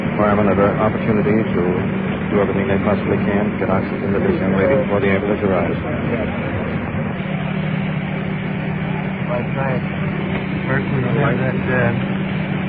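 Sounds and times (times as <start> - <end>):
rescue truck engine running: 0.0 - 12.6
speech: 0.2 - 6.8, 9.3 - 10.0, 10.7 - 12.1.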